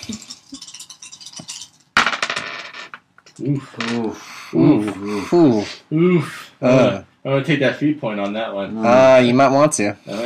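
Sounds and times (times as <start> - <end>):
dice rattling in a cup: 0.0 - 2.8
speech: 3.4 - 10.2.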